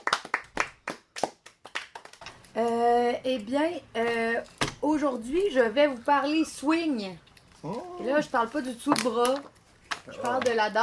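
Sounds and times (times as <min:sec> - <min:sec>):
audience hand claps: 0:00.0 - 0:02.4
speech: 0:02.6 - 0:09.5, 0:10.1 - 0:10.8.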